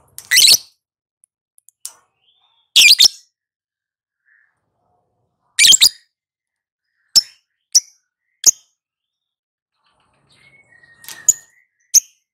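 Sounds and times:
lovebird chirping, trilling and ticking: 0.2 - 0.8, 1.7 - 3.5, 5.6 - 12.3.

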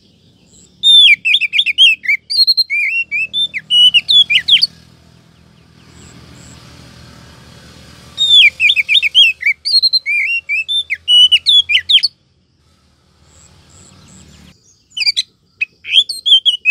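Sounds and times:
Oriental magpie-robin rising whistle: 0.8 - 4.8, 8.2 - 12.2, 14.9 - 16.7.

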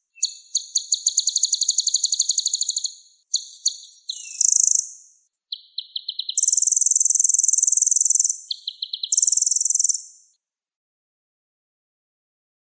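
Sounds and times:
sunbird singing buzzy trills and ticks: 0.2 - 10.2.

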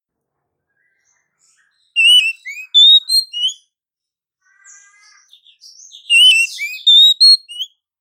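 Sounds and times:
female Oriental magpie-robin calling with rising whistled slurs: 0.8 - 3.6, 4.7 - 7.7.

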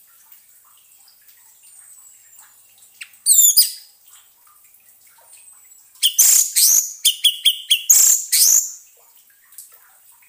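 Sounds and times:
orange-headed thrush song of whistled and chirping notes: 3.3 - 3.8, 6.0 - 8.8.

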